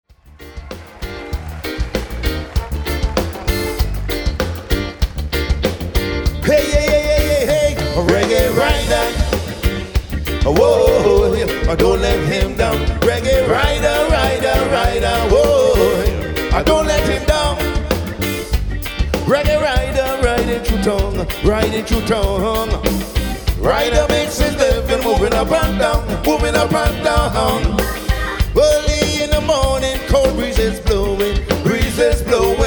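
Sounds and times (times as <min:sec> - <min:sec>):
reggae music: 0:00.0 - 0:32.6.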